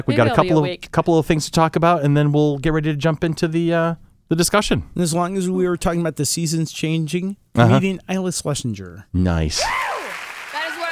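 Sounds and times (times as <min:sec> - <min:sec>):
speech: 0:00.0 - 0:09.9
women cheering woo: 0:09.6 - 0:10.8
crowd noise and applause: 0:09.6 - 0:10.9.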